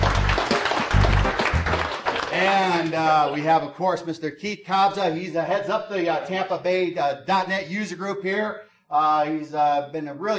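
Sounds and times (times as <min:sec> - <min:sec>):
audience applause at a Tampa .NET user group meeting: 0:00.0 - 0:03.6
speech: 0:02.4 - 0:10.3.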